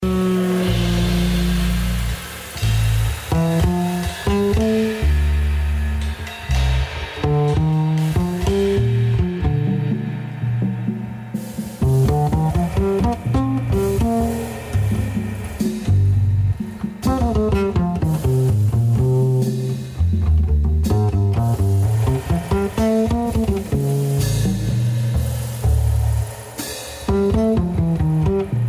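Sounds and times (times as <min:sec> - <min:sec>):
jazz music: 0:00.0 - 0:28.6.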